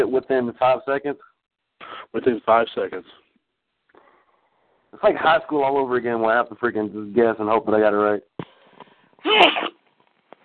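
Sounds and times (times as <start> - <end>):
speech: 0.0 - 3.2, 4.9 - 8.3, 9.2 - 9.8
sneeze: 9.2 - 9.8.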